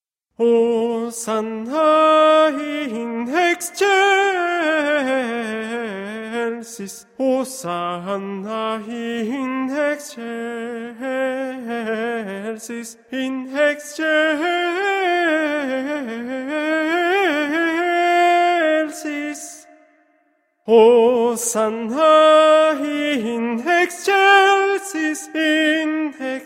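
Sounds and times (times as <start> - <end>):
tenor singing: 0.4 - 20.0, 20.7 - 26.4.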